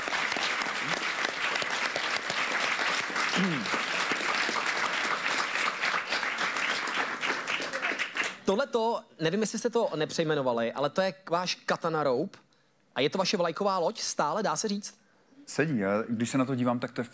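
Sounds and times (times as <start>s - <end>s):
audience applause: 0.0s - 8.4s
speech: 3.4s - 3.8s, 8.5s - 12.4s, 13.0s - 17.1s.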